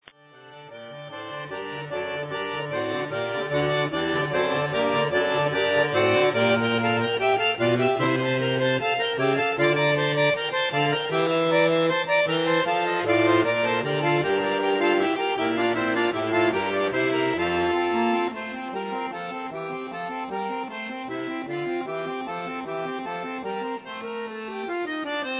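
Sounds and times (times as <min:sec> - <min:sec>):
solo fugue: 0:00.0 - 0:25.3.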